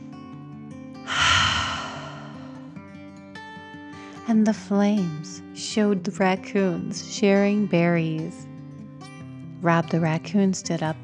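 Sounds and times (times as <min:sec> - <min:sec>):
storyteller imitating a dragon's deep breath in and out: 0:01.1 - 0:02.6
steady low tone: 0:01.1 - 0:02.8
speech: 0:04.3 - 0:08.5, 0:09.6 - 0:11.0.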